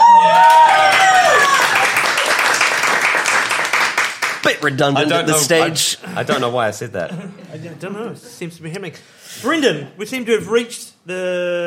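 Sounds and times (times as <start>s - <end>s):
audience applause: 0.0s - 4.8s
speech: 4.6s - 11.6s.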